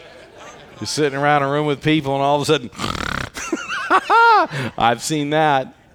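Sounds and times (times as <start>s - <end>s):
laughter: 0.0s - 5.3s
speech: 0.8s - 3.0s, 3.9s - 5.8s
person imitating snoring: 2.7s - 3.6s.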